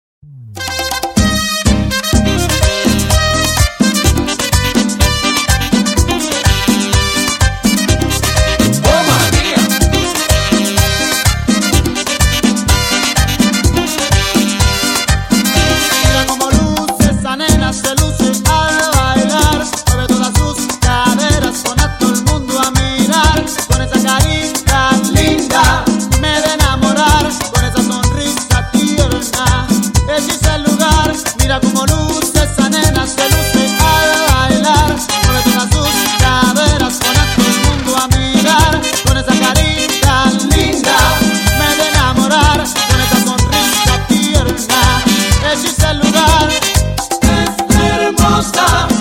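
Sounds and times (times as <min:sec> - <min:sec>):
merengue music: 0:00.3 - 0:48.9.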